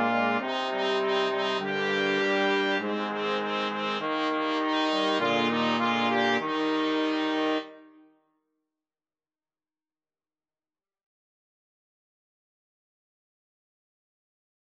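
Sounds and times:
brass quartet playing: 0:00.0 - 0:07.8.

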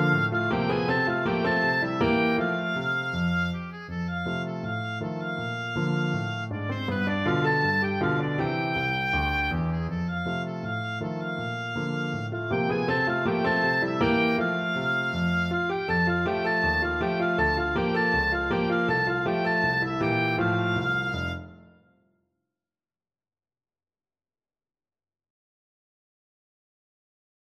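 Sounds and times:
oboe melody: 0:00.0 - 0:21.8.

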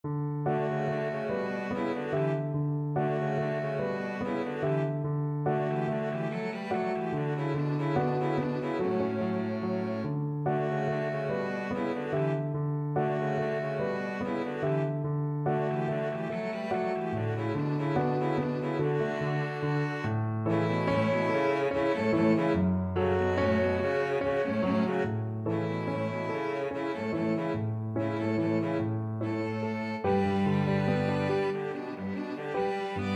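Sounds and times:
violin and cello duet: 0:00.5 - 0:33.1.

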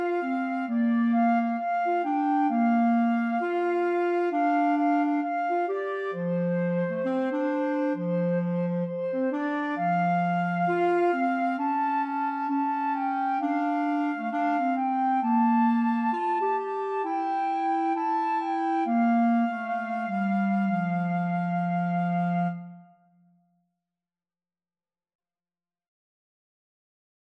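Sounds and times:
clarinet in a flute and clarinet duet: 0:00.0 - 0:23.2
flute in a flute and clarinet duet: 0:00.0 - 0:23.2.

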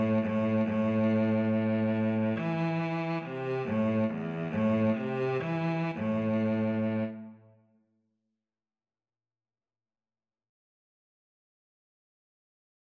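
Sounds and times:
cello duet: 0:00.0 - 0:07.5.

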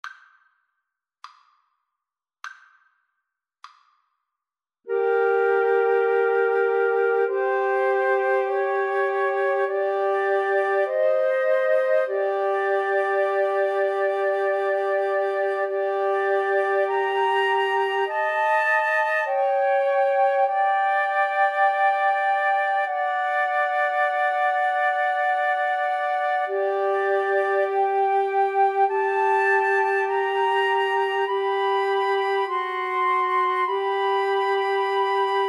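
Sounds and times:
flute trio playing: 0:04.9 - 0:35.4.

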